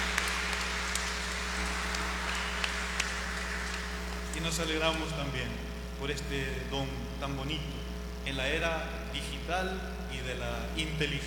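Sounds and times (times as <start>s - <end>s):
audience applauding: 0.0s - 5.0s
low electrical hum: 0.0s - 11.2s
speech: 4.4s - 11.2s.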